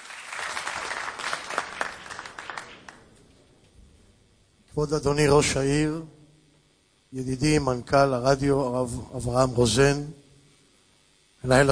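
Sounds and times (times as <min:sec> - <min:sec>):
audience applause: 0:00.0 - 0:03.2
speech: 0:04.8 - 0:06.2, 0:07.1 - 0:10.2, 0:11.4 - 0:11.7.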